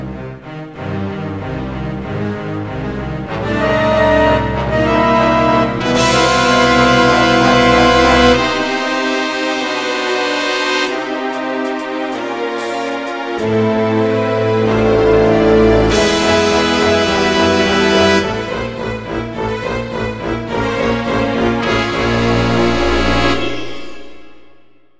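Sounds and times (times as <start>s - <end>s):
battle music: 0.5s - 24.8s.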